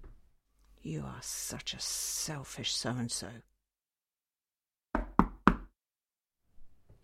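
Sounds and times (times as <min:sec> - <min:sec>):
speech: 0:00.9 - 0:03.5
knocking on a door: 0:04.9 - 0:05.7.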